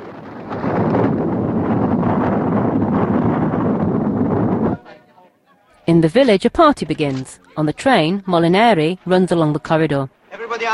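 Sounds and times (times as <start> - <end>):
avalanche of snow and trees rushing down: 0.0 - 4.8
speech: 6.0 - 10.7.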